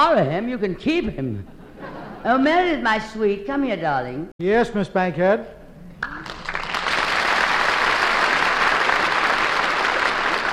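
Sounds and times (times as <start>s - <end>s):
speech: 0.0s - 1.6s, 2.2s - 6.1s
studio audience applause: 6.0s - 10.5s.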